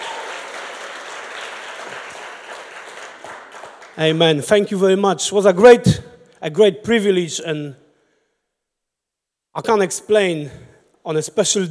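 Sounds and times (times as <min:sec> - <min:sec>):
audience clapping: 0:00.0 - 0:04.4
speech: 0:04.0 - 0:07.8, 0:09.6 - 0:11.6.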